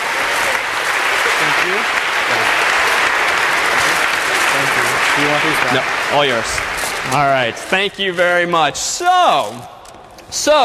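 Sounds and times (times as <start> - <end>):
audience applause: 0.0 - 8.6
speech: 1.7 - 2.6, 5.2 - 10.6.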